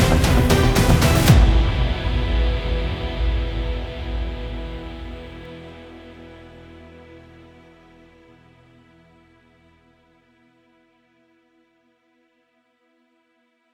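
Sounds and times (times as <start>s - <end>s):
tense guitar composition: 0.0s - 9.8s.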